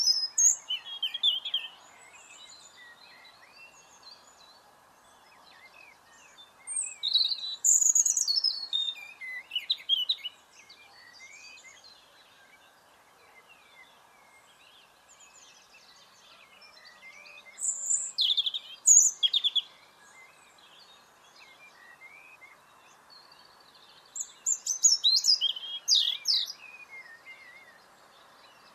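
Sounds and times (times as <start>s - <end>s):
European robin Erithacus rubecula song: 0.0s - 28.7s.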